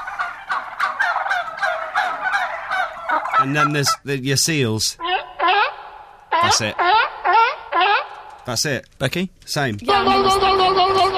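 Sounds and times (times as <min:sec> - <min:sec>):
turkey gobbling: 0:00.0 - 0:04.0, 0:05.0 - 0:08.4
speech: 0:03.4 - 0:05.1, 0:06.4 - 0:07.0, 0:08.5 - 0:10.6.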